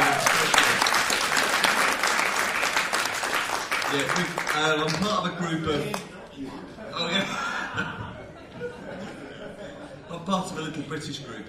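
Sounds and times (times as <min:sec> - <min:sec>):
audience applause: 0:00.0 - 0:05.2
speech: 0:03.9 - 0:08.0, 0:10.3 - 0:11.4
laughter: 0:05.8 - 0:10.8.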